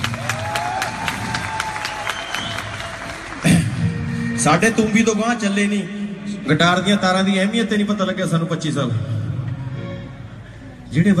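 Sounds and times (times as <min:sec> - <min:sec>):
audience applause: 0:00.0 - 0:04.4
speech: 0:04.4 - 0:09.2, 0:10.9 - 0:11.1.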